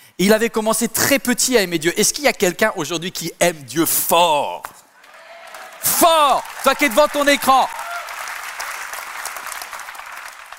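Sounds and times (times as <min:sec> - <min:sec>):
speech: 0:00.2 - 0:04.8, 0:05.8 - 0:07.8
audience applause: 0:05.0 - 0:10.5.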